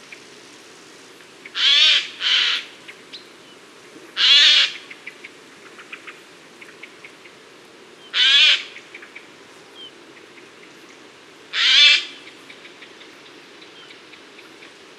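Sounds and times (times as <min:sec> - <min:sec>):
Eurasian jay screeching: 0:04.2 - 0:04.8, 0:08.2 - 0:08.7, 0:11.6 - 0:12.1.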